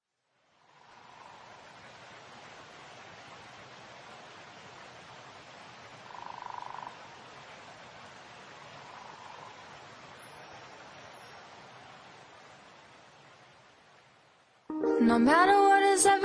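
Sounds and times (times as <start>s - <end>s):
melody: 14.7s - 16.1s.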